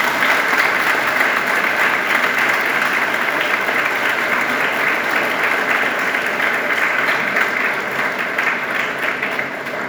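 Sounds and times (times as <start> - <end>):
audience applause: 0.0 - 9.8.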